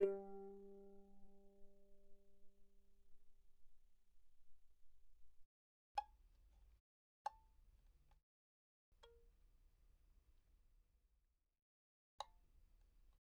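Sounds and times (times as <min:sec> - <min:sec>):
very soft violin pizzicato on the G string: 0:00.0 - 0:00.9.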